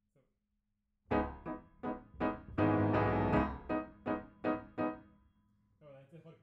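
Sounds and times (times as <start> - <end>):
piano note B: 1.1 - 5.1.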